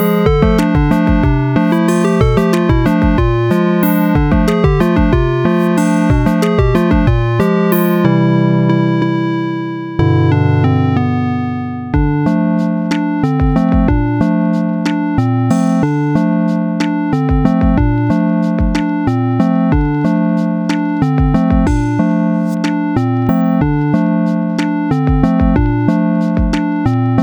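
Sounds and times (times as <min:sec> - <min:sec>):
8-bit rainy city lofi music: 0:00.0 - 0:27.2.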